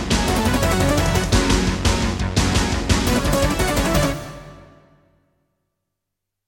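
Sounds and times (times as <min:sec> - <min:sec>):
synthesizer intro music: 0:00.1 - 0:02.1, 0:03.0 - 0:05.1.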